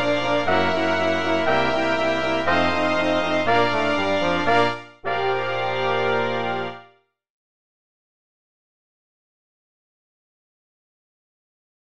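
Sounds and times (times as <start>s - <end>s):
brass music: 0.0s - 7.0s.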